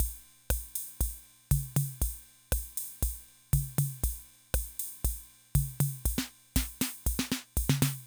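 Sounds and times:
classic drum machine rhythm loop: 0.0 - 8.0.

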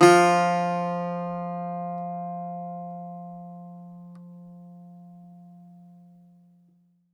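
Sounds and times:
Greek bazouki plucked strings: 0.0 - 6.2.

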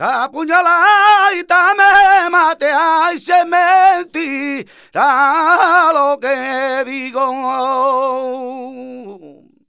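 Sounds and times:
male flamenco cantaor singing: 0.0 - 9.5.

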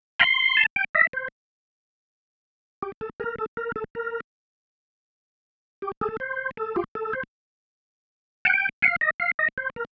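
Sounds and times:
organ riff: 0.2 - 1.3, 2.8 - 4.2, 5.8 - 7.3, 8.5 - 9.9.

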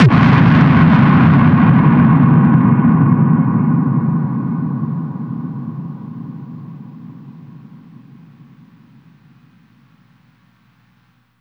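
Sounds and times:
thunderous impacts, hits and booms: 0.0 - 7.5.

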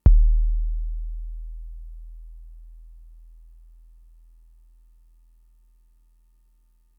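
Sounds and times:
Fricke MFB-522 kick drum: 0.0 - 3.4.

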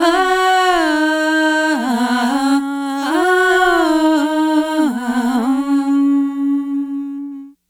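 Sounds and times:
East Indian kirtan choir singing ah: 0.0 - 7.5.

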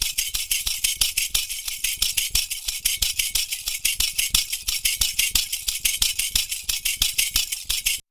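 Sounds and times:
percussion: 0.0 - 8.0.

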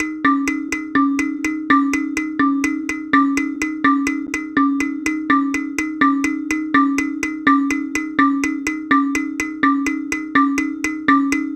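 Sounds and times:
kalimba: 0.0 - 11.5.

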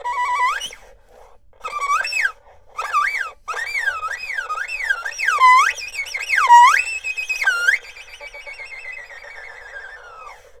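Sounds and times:
erhu: 0.0 - 10.5.

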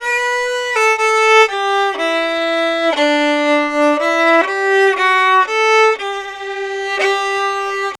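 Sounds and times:
Appalachian fiddle: 0.0 - 7.9.

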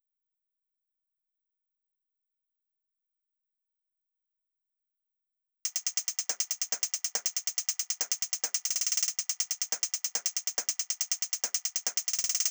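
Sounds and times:
closed hi-hat: 5.7 - 12.4
drum loop at 140 BPM: 5.7 - 12.4.

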